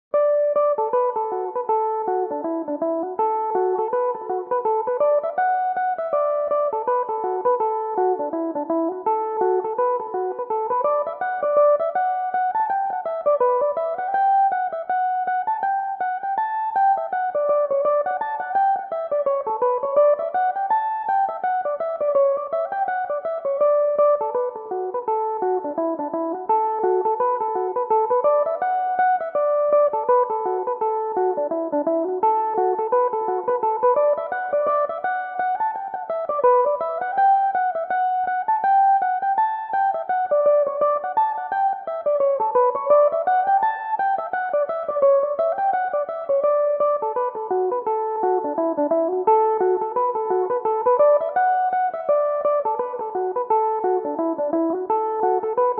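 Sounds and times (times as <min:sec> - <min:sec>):
Irish mandolin playing in D major: 0:00.2 - 0:55.7.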